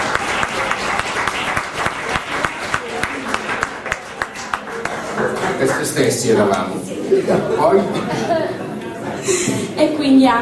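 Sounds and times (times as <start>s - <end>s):
audience applause: 0.0s - 6.6s
speech: 5.8s - 8.6s, 9.2s - 10.4s
laughter: 7.0s - 9.8s.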